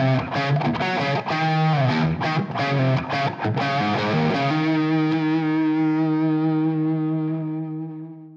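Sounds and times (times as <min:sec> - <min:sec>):
electric guitar riff through pickup switch positions: 0:00.0 - 0:08.3.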